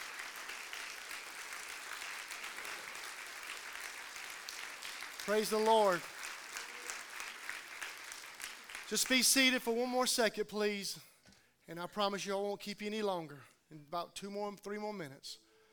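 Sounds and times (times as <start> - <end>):
hand clap of praise: 0.0 - 9.2
speech: 5.2 - 6.1, 8.9 - 11.1, 11.7 - 15.4.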